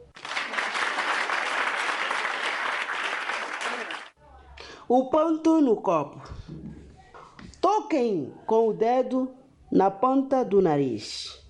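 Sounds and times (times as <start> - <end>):
group clapping: 0.0 - 4.2
speech: 4.9 - 6.7, 7.9 - 11.3.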